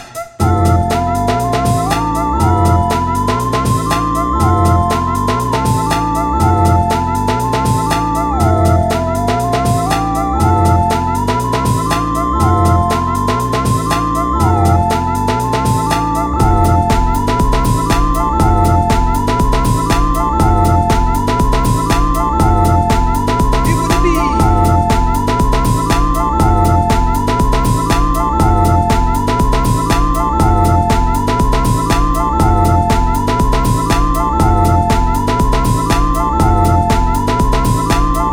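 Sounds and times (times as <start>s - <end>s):
techno loop: 0.4s - 38.3s.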